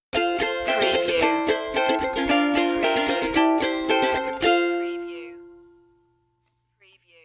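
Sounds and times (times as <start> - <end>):
carnival stinger music: 0.2 - 5.8.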